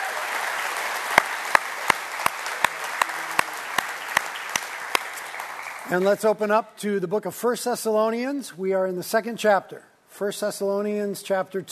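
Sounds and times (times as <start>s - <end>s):
audience applause: 0.0s - 6.2s
speech: 5.9s - 11.7s.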